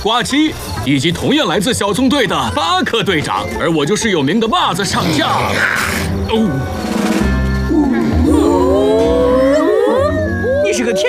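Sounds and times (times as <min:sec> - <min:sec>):
speech: 0:00.0 - 0:06.9, 0:10.8 - 0:11.0
hunting dogs cackling laugh-like whoops: 0:07.7 - 0:11.0.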